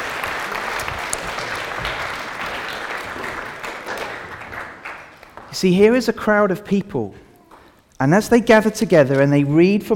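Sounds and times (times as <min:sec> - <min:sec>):
room full of people applauding: 0:00.0 - 0:05.6
speech: 0:05.6 - 0:07.2, 0:08.0 - 0:09.9.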